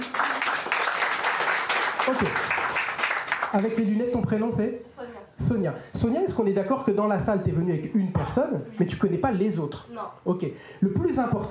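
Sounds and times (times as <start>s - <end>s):
crowd applause: 0.0s - 3.8s
speech: 2.1s - 2.5s, 3.5s - 11.4s.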